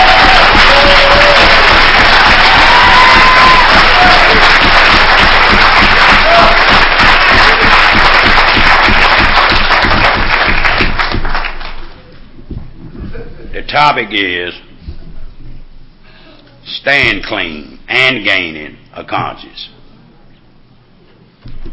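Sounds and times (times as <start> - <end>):
large crowd applause: 0.0 - 12.1
speech: 13.8 - 14.7, 16.8 - 19.6.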